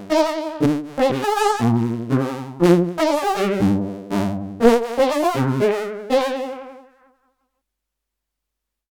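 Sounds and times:
FM saw synth randomized tones: 0:00.0 - 0:06.1.

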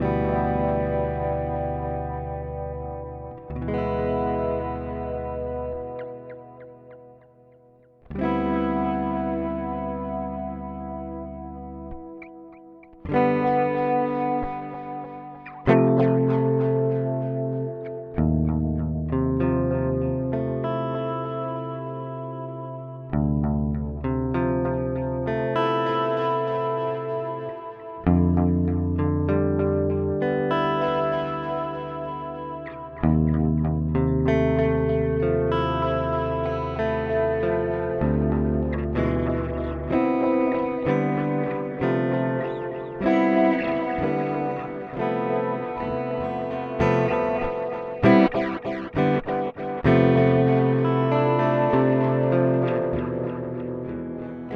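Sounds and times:
guitar through Amplitube X-Time Analog: 0:00.0 - 0:54.5.

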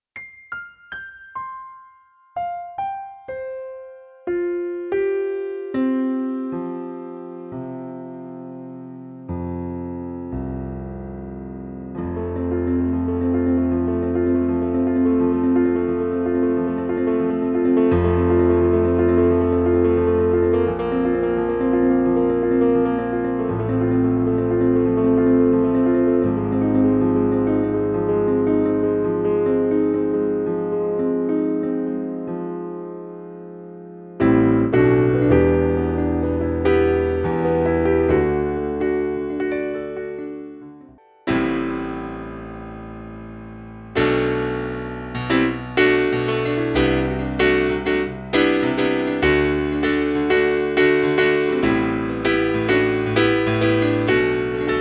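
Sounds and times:
piano: 0:00.0 - 0:54.7.

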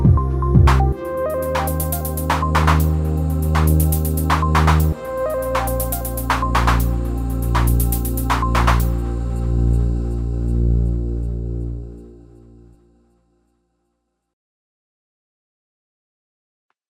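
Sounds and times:
M8 Tracker example song: 0:00.0 - 0:12.5.

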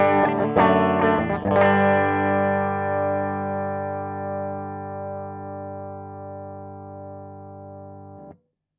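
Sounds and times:
strumming: 0:00.0 - 0:04.6.

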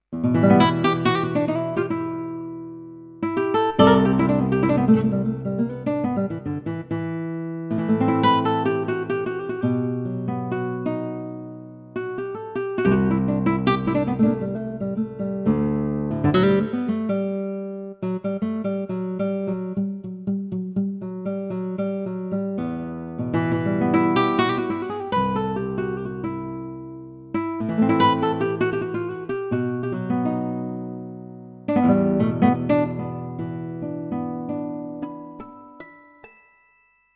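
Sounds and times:
nylon-string guitar: 0:00.0 - 0:36.0.

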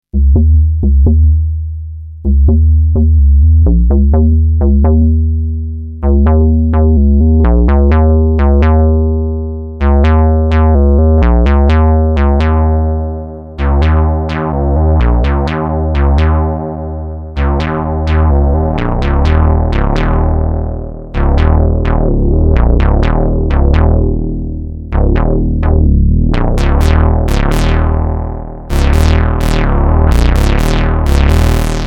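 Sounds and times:
bass: 0:00.0 - 0:31.8.

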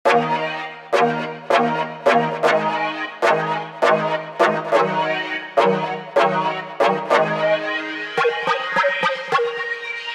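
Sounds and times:
synth stab with filter and spectral morphing: 0:00.1 - 0:10.0.

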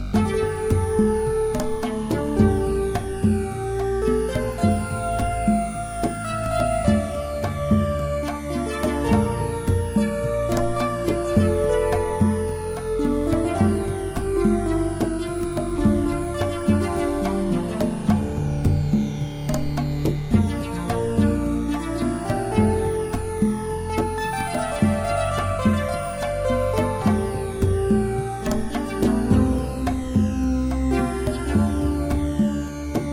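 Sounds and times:
melody: 0:00.2 - 0:33.0.

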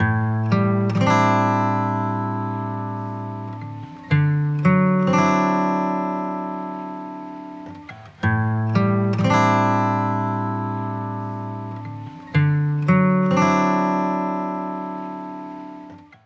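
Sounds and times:
guitar: 0:00.0 - 0:16.2.

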